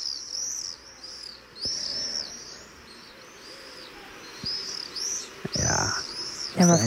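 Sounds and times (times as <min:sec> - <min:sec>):
common swift calls: 0:00.0 - 0:06.8
speech: 0:06.6 - 0:06.8.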